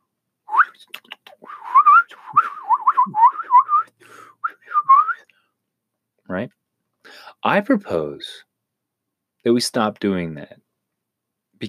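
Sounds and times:
person whistling an imitation of a bird call: 0.5 - 5.2
speech: 6.3 - 6.6, 7.4 - 8.5, 9.4 - 10.6.

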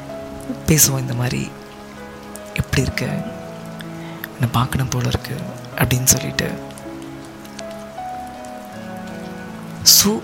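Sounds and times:
soft sustained musical tones: 0.0 - 10.2
steady rain on a hard surface: 0.0 - 10.2
speech: 0.5 - 1.7, 2.8 - 3.4, 4.4 - 6.7, 9.8 - 10.2.

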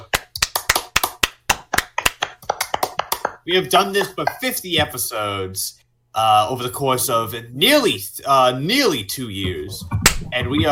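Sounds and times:
small group clapping: 0.0 - 4.5
speech: 3.4 - 10.7.

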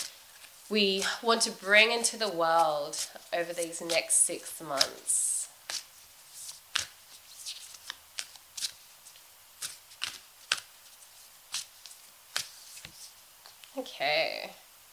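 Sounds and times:
speech: 0.7 - 5.3, 13.8 - 14.6
oracle cards being shuffled and drawn: 2.0 - 13.8.

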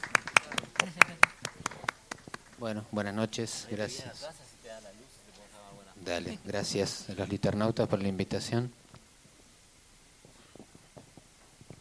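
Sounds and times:
scattered applause from a small group: 0.0 - 3.0
speech: 2.6 - 4.5, 6.0 - 8.8.

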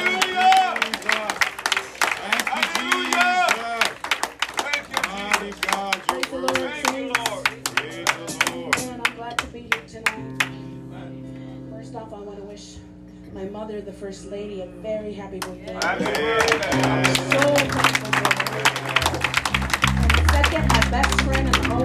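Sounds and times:
audience hand clapping: 0.0 - 10.6, 15.4 - 21.8
speech: 14.1 - 17.0.

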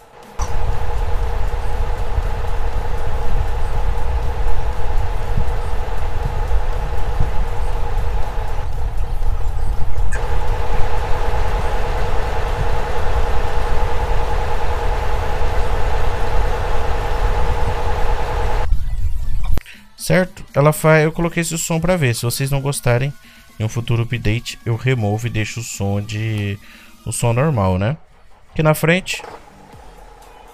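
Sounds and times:
truck engine at raised revs while tipping: 0.0 - 18.7
speech: 20.1 - 29.4.

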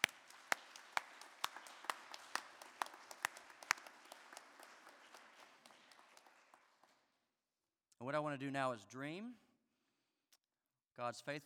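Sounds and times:
group clapping: 0.0 - 7.2
speech: 8.0 - 9.4, 11.0 - 11.4.

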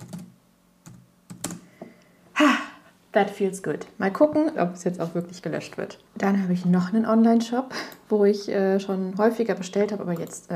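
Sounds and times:
typing an email on a computer keyboard: 0.0 - 1.6
speech: 3.1 - 10.5.

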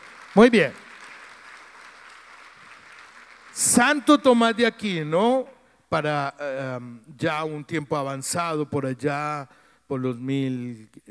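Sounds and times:
crowd clapping: 0.0 - 4.8
speech: 0.4 - 0.8, 3.6 - 11.0.

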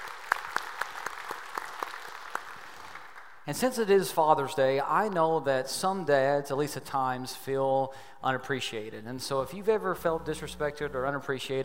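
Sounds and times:
congregation applauding during a church service: 0.0 - 3.5
speech: 3.5 - 11.6.

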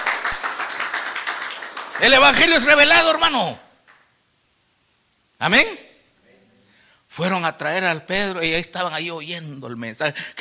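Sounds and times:
crowd clapping rhythmically: 0.0 - 3.2, 3.8 - 4.1
speech: 2.0 - 3.6, 5.4 - 5.8, 7.1 - 10.4.

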